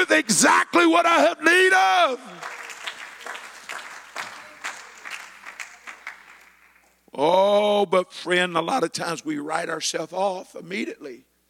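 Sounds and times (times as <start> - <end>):
speech: 0.0 - 2.5, 7.2 - 11.3
audience clapping hands: 2.3 - 7.0.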